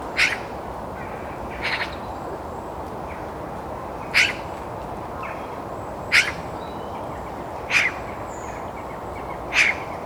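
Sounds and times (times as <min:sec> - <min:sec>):
Eurasian magpie Pica pica giving harsh rasping notes: 0:00.2 - 0:00.5, 0:04.2 - 0:04.4, 0:06.1 - 0:06.4, 0:09.5 - 0:09.9.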